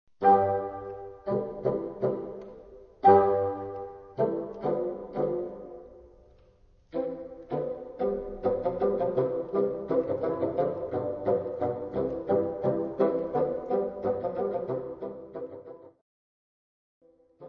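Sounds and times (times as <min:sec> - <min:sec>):
pizzicato strings: 0:00.2 - 0:16.0.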